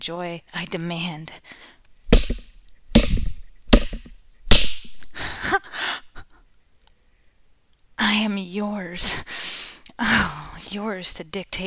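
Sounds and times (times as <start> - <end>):
speech: 0.0 - 2.4, 8.1 - 11.6
spanking slaps: 2.1 - 5.2.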